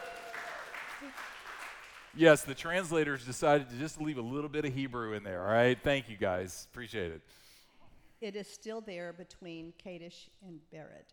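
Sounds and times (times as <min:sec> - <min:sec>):
brief vocal cheers: 0:00.0 - 0:01.6
audience applause: 0:00.0 - 0:02.6
speech: 0:02.1 - 0:07.4, 0:08.2 - 0:11.1.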